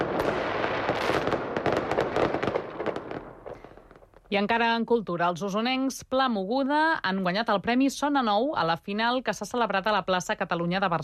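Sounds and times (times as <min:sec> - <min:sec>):
fireworks at the Punta del Miracle crackling and popping: 0:00.0 - 0:04.5
speech: 0:04.3 - 0:11.0.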